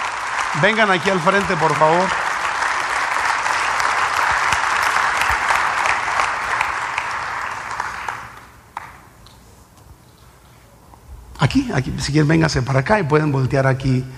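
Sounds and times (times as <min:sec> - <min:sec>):
audience applause: 0:00.0 - 0:09.0
speech: 0:00.5 - 0:02.2, 0:11.5 - 0:14.1.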